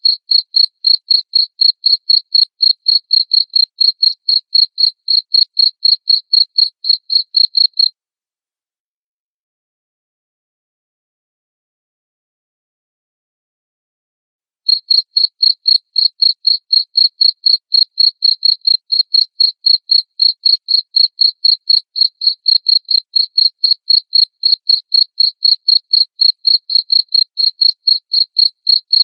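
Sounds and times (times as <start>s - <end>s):
cricket chirping: 0.0s - 7.9s, 14.7s - 29.0s.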